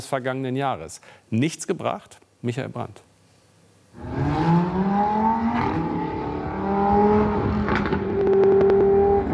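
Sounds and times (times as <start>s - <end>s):
speech: 0.0s - 3.1s, 4.0s - 4.5s
speeding cars with roaring revving engines: 4.0s - 9.3s.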